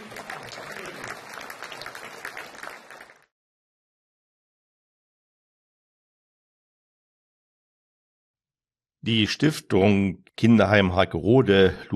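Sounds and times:
audience applause: 0.0s - 3.3s
speech: 9.0s - 11.9s.

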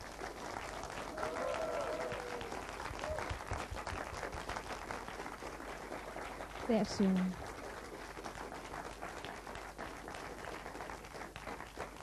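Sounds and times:
audience applause: 0.0s - 12.0s
speech: 6.7s - 7.4s.

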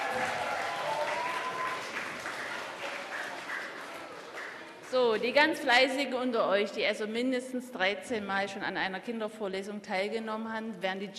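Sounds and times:
audience applause: 0.0s - 4.9s
speech: 4.9s - 11.1s.

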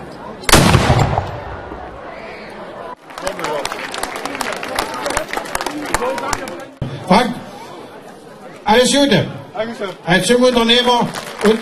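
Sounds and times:
crowd murmuring: 0.0s - 11.5s
ceremonial salute cannon shot fired by army battalion: 0.5s - 2.0s
crowd clapping: 3.0s - 6.8s, 10.4s - 11.5s
speech: 7.1s - 7.4s, 8.7s - 11.5s.

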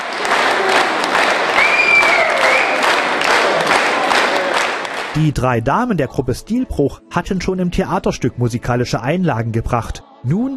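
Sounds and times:
audience applause: 0.0s - 5.2s
speech: 5.2s - 10.5s.

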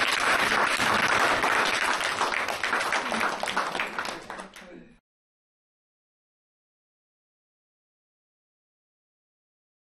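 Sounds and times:
audience applause: 0.0s - 4.8s.

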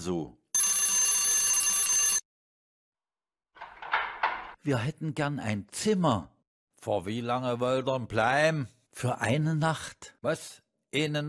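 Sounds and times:
speech: 0.0s - 0.4s, 4.6s - 11.2s
hotel doorbell ringing with electric jangle: 0.6s - 2.2s.

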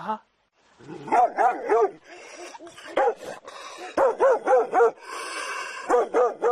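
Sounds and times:
dog barking: 1.1s - 2.0s, 2.9s - 5.0s, 5.8s - 6.5s.

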